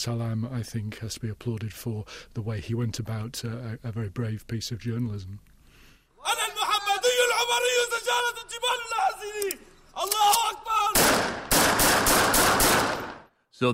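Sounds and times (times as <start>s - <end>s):
speech: 0.0s - 5.5s, 7.5s - 11.4s
loud raised voices: 6.2s - 11.0s
machine gun fire in street fighting: 10.9s - 13.3s.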